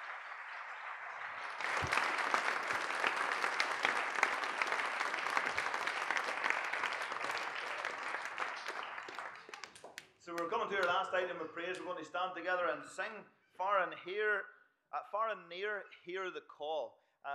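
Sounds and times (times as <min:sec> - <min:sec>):
audience applause: 0:00.0 - 0:11.1
speech: 0:10.4 - 0:17.3.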